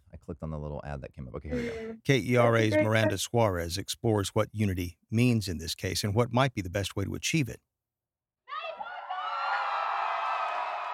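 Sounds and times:
speech: 0.3 - 7.7
laughter: 1.5 - 1.9, 2.5 - 3.2
crowd of supporters cheering at a bar: 8.5 - 10.9.

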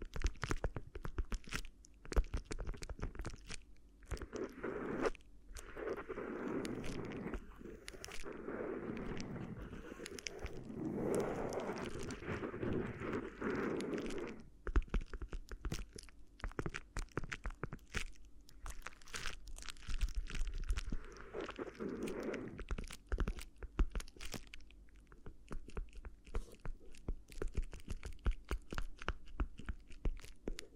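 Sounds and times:
crinkly ear massage crackling and rustling: 0.0 - 30.7
low steady hum: 0.0 - 30.7
swirling rubbing: 4.2 - 14.5, 20.8 - 22.6.

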